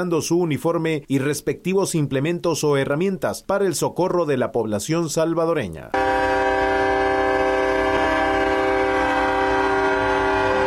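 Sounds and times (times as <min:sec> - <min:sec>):
speech: 0:00.0 - 0:06.2
fire truck siren during independence parade: 0:06.0 - 0:10.6.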